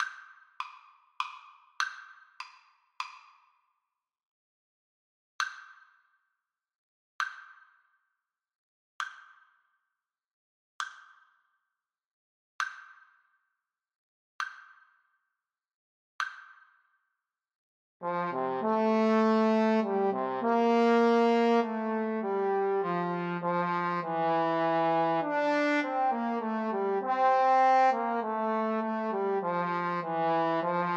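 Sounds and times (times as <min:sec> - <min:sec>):
trombone trio: 0:18.0 - 0:30.9.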